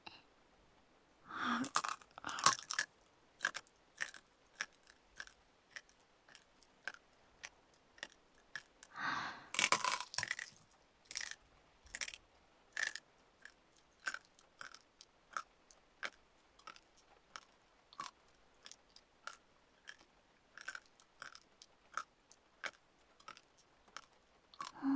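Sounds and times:
crunchy chewing of elbow cartilage: 1.4s - 7.0s, 9.3s - 12.2s, 12.8s - 16.8s, 17.4s - 24.8s.

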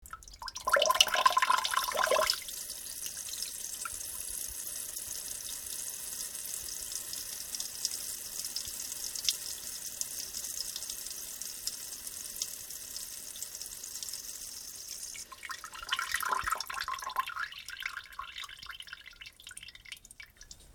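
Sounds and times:
person urinating: 0.0s - 2.5s, 15.2s - 20.7s.

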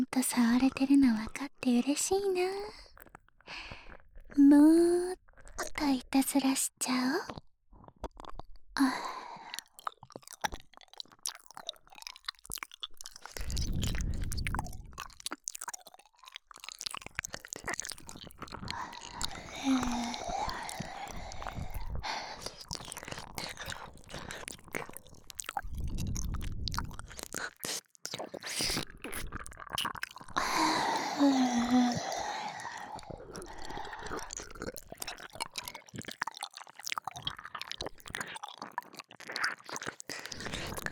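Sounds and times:
nipple licking: 0.0s - 4.4s, 7.1s - 40.8s
oral sex sounds: 0.0s - 12.2s, 12.8s - 40.8s
ear licking: 7.8s - 40.8s
ghost masturbating: 18.5s - 25.0s, 30.2s - 35.7s.

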